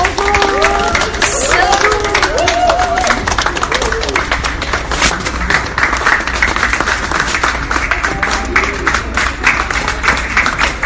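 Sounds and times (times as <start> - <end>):
excited voices: 0.0 - 4.3
scattered cheers: 0.0 - 4.3
crowd applauding shoppers into store: 0.0 - 10.8.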